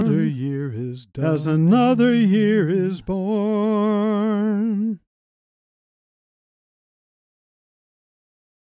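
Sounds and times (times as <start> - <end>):
isolated vocals: 0.0 - 5.1.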